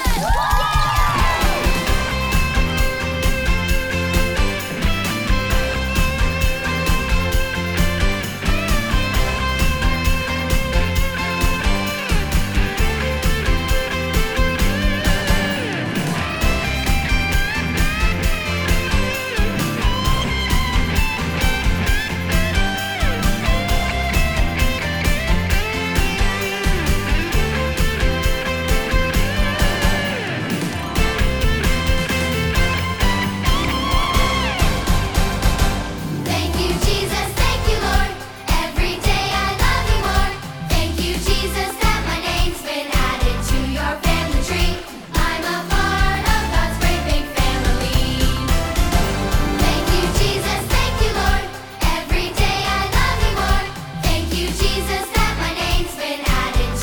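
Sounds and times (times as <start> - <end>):
curtain call music: 0.0 - 56.8.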